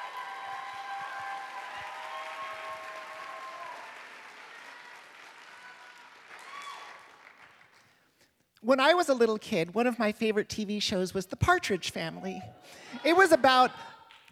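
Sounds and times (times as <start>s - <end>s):
Ignite talk audience applause welcoming a speaker: 0.0s - 7.8s
speech: 8.6s - 14.3s.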